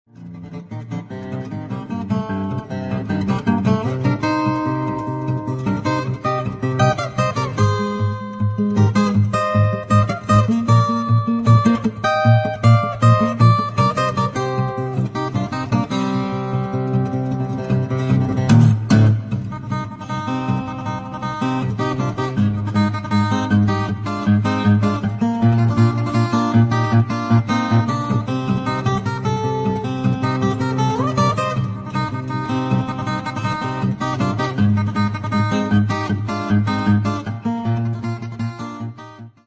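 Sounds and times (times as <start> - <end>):
solo guitar: 0.1 - 39.4.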